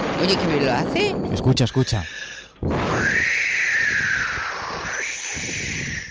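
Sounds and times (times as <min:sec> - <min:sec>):
speech: 0:00.2 - 0:02.7
person whistling imitating the wind: 0:02.7 - 0:06.0.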